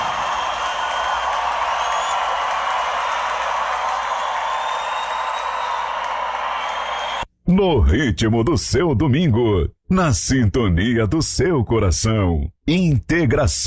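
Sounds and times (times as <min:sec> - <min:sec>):
audience applause: 0:00.0 - 0:07.2
speech: 0:07.5 - 0:13.6.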